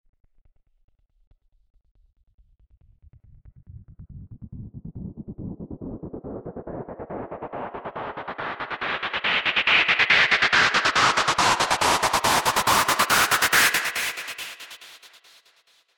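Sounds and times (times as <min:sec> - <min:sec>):
delayed pink noise: 0:08.3 - 0:15.0.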